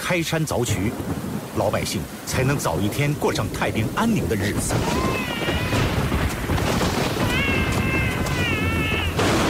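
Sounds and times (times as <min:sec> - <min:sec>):
speech: 0:00.1 - 0:05.7
baby crying: 0:04.7 - 0:06.4, 0:07.1 - 0:09.3.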